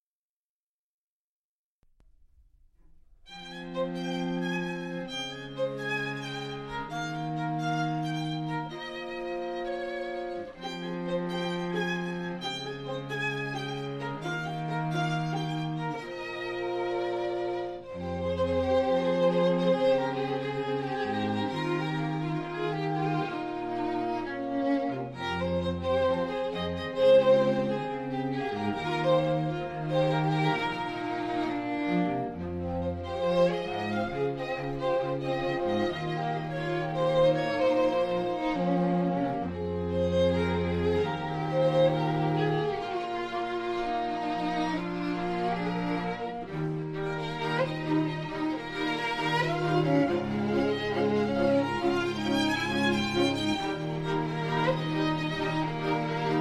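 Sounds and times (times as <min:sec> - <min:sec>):
strings: 0:02.0 - 0:56.3.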